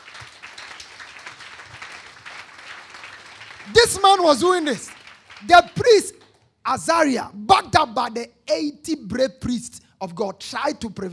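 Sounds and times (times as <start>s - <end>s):
audience clapping: 0.0s - 6.5s
speech: 3.7s - 11.1s.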